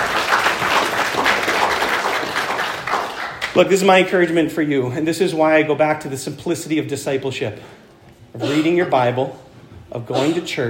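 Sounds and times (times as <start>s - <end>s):
church congregation round of applause: 0.0s - 3.6s
speech: 3.6s - 7.8s, 8.4s - 10.6s.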